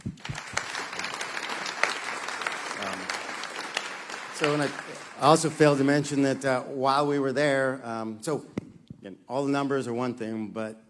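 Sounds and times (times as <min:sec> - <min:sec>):
audience applause: 0:00.0 - 0:06.4
speech: 0:04.4 - 0:10.8.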